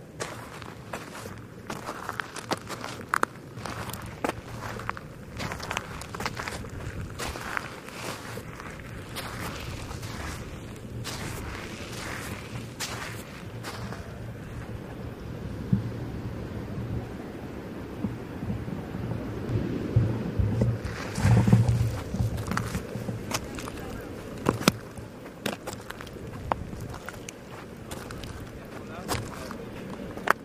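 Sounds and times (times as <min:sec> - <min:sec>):
footsteps crunching through sand on a beach: 0:00.0 - 0:14.8, 0:19.6 - 0:30.4
low steady rumble: 0:03.6 - 0:25.2.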